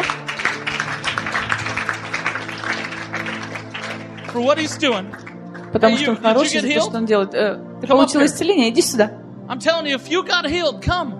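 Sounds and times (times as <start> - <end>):
audience hand clapping: 0.0 - 6.9
low musical drone: 0.0 - 11.1
speech: 4.4 - 11.1.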